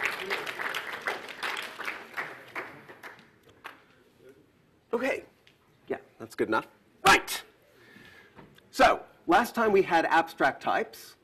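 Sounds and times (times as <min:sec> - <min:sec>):
audience applause: 0:00.0 - 0:03.8
speech: 0:05.0 - 0:05.3, 0:05.9 - 0:07.4, 0:08.8 - 0:11.2.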